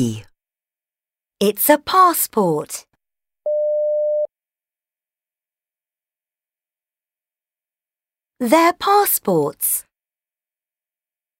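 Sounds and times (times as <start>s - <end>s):
speech: 0.0s - 0.3s, 1.4s - 2.9s, 8.4s - 9.9s
telephone busy signal beep: 3.5s - 4.3s.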